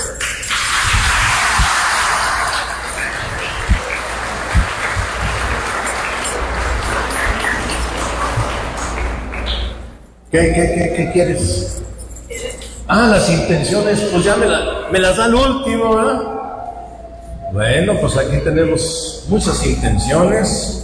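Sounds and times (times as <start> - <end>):
audience clapping: 0.0 - 10.1
murmuring voices: 0.0 - 20.8
speech: 10.3 - 11.9, 12.9 - 16.3, 17.5 - 20.8.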